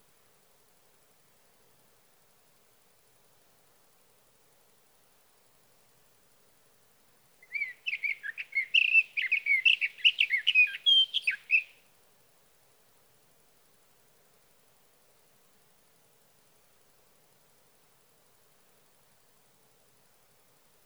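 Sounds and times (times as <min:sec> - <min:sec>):
sage thrasher: 0:07.4 - 0:11.8.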